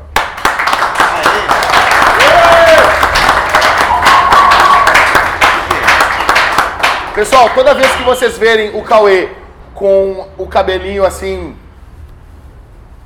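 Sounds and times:
audience applause: 0.0 - 8.2
whistle-like cheers: 1.1 - 3.0, 3.7 - 5.2
speech: 7.2 - 11.6.

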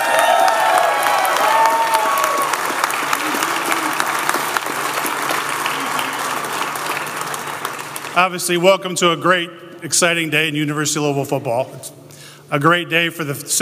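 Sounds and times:
audience applause at a University of Louisville football event: 0.0 - 8.4
crowd noise at a University of Louisville football event: 0.0 - 8.6
speech: 8.2 - 13.6.

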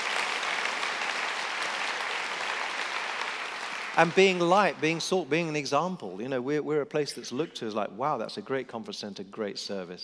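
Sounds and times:
audience at a conference applauding: 0.0 - 5.1
speech: 4.0 - 10.0.

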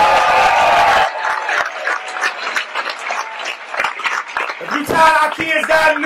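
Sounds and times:
crowd clapping: 0.0 - 6.0
speech: 5.3 - 6.0.

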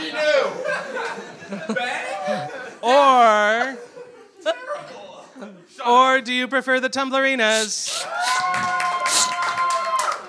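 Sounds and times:
laughter: 0.2 - 2.8, 3.6 - 5.0
speech: 6.2 - 8.7
comedy show audience whooping: 7.9 - 10.2
comedy show audience clapping: 8.3 - 10.2.

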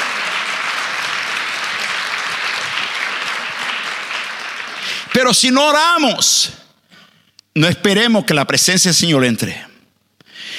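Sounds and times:
loud audience applause: 0.0 - 5.8
speech: 5.2 - 6.6, 7.6 - 9.7.

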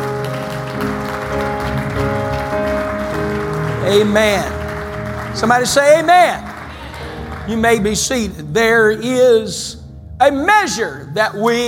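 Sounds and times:
audience clapping hands: 0.0 - 8.4
speech: 3.9 - 4.6, 5.4 - 6.5, 7.5 - 11.6.

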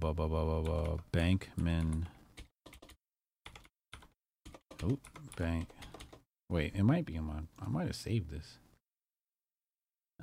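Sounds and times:
speech: 0.0 - 2.2, 4.8 - 5.9, 6.5 - 8.6
faint computer keyboard typing a name into a search: 0.6 - 6.3.

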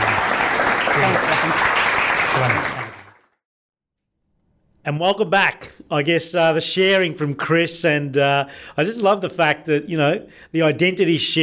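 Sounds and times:
audience applause: 0.0 - 3.4
speech: 2.4 - 2.8, 4.9 - 11.4.

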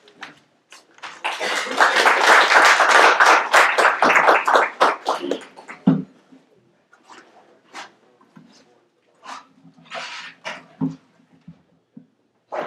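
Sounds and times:
audience applause welcoming a speaker at the Institute of World Politics: 1.0 - 5.9.

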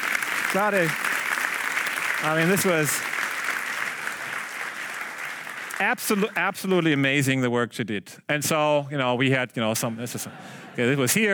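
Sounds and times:
audience applause: 0.0 - 6.6
speech: 0.5 - 1.1, 2.2 - 3.2, 5.8 - 11.3.

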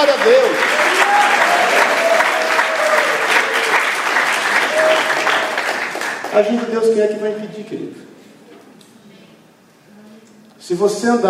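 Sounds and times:
speech: 0.0 - 0.7, 6.4 - 8.1, 10.7 - 11.2
audience applause: 0.0 - 7.0.

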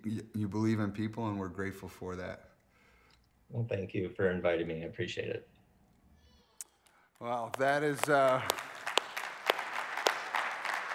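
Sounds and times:
speech: 0.0 - 2.5, 3.5 - 5.6, 7.2 - 8.7
soft scattered applause from a small group: 6.8 - 10.9.

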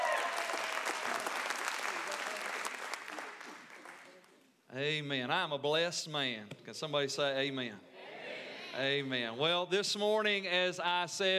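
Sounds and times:
audience applause: 0.0 - 4.2
speech: 4.8 - 7.9, 8.8 - 11.3.

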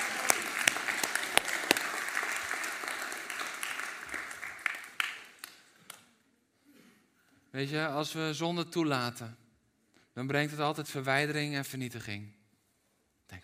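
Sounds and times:
audience applause: 0.0 - 5.7
speech: 7.6 - 9.4, 10.2 - 12.4.

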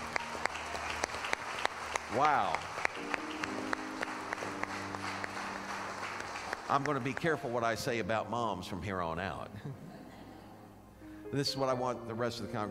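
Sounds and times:
audience hand clapping: 0.0 - 7.8
speech: 2.1 - 3.2, 6.7 - 9.8, 11.3 - 12.6.

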